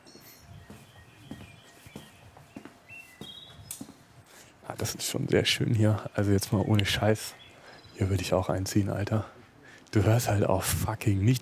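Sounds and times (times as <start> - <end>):
faint bird chirps: 0.0 - 4.1, 6.0 - 8.5
footsteps walking along the green inner courtyard of a flat U-shaped building: 0.1 - 4.2
speech: 4.7 - 7.4, 8.0 - 11.4.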